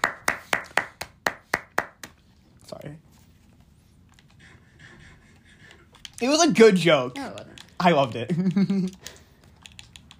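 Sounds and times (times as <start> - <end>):
sharp hand claps: 0.0 - 2.2
speech: 2.7 - 3.1, 6.2 - 9.1.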